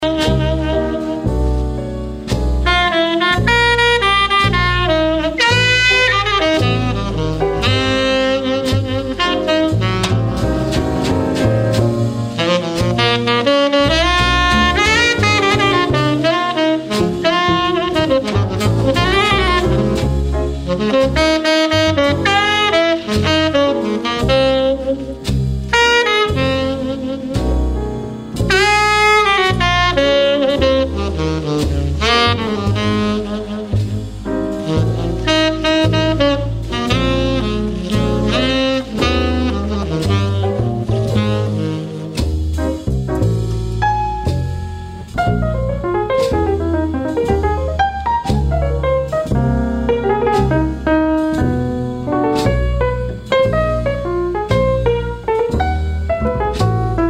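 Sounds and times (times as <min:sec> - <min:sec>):
jazz music: 0:00.0 - 0:57.0.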